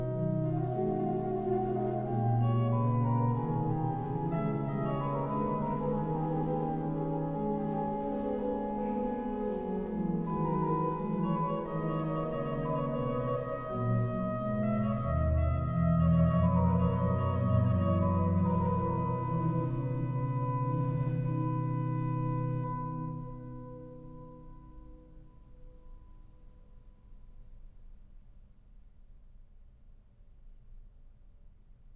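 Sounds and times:
organ playing chorale preludes: 0.0s - 24.2s.

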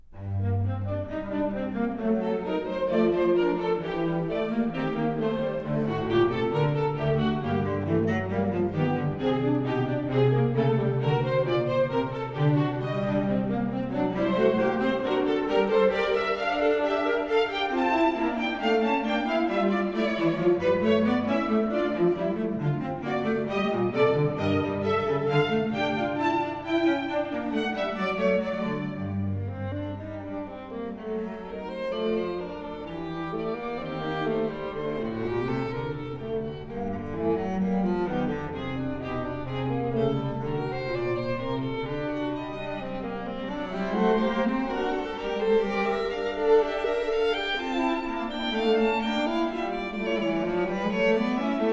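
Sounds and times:
strings playing classical canon: 0.0s - 51.7s.

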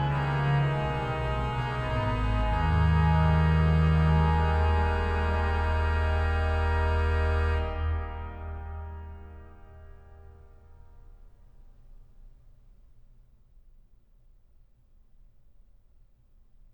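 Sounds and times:
organ playing chorale preludes: 0.0s - 10.3s.

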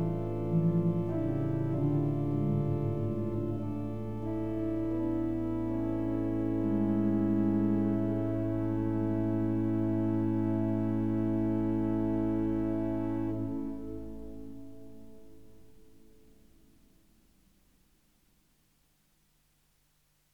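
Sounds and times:
organ: 0.0s - 15.2s.

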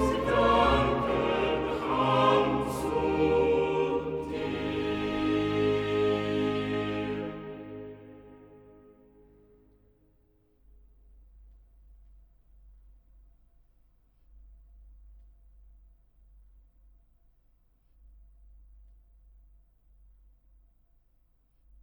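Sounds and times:
choir singing cantatas: 0.0s - 9.2s.

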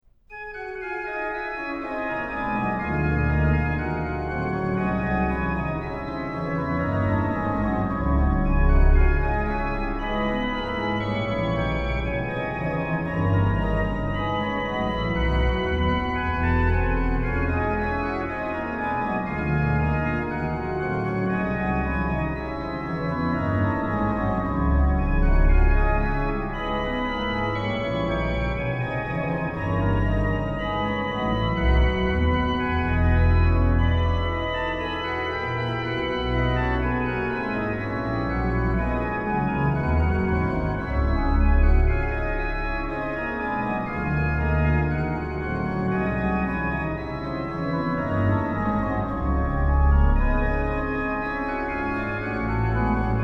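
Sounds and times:
organ: 0.3s - 53.2s.

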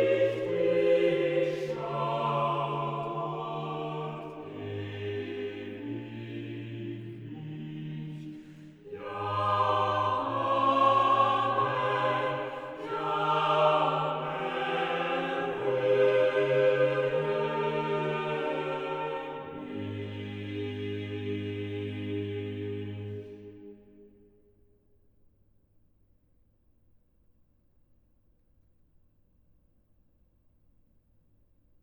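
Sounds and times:
organ chorale: 0.0s - 23.7s.

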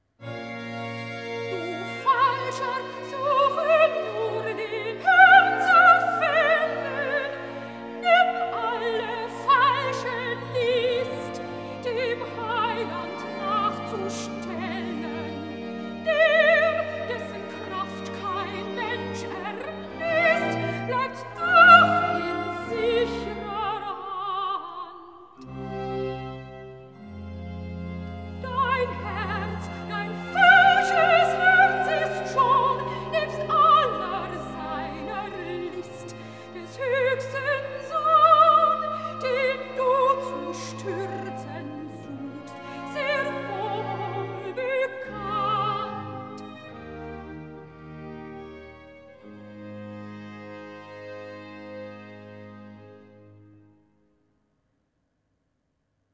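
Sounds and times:
soprano singing recitative: 1.3s - 26.2s, 28.2s - 47.4s.

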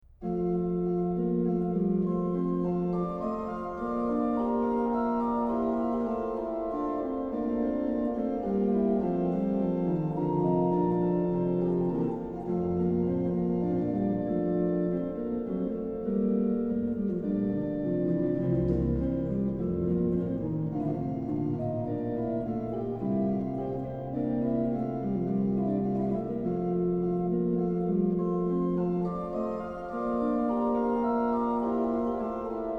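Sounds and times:
organ playing a hymn: 0.2s - 32.7s.

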